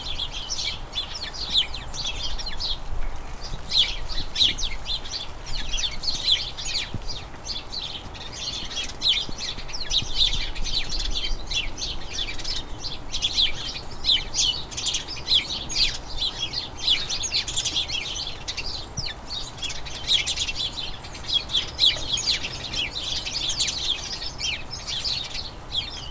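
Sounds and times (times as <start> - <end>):
flock of house sparrows chirping: 0.0 - 26.0.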